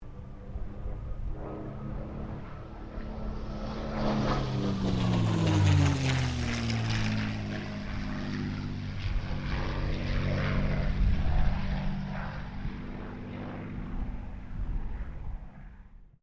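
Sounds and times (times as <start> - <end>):
CA-18 Mustang aircraft passing: 0.0 - 16.2.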